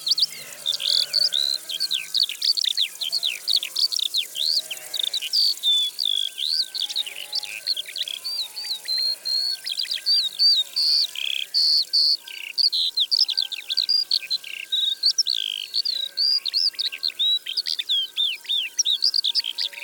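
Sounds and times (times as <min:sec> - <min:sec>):
Eurasian skylark singing: 0:00.0 - 0:19.8.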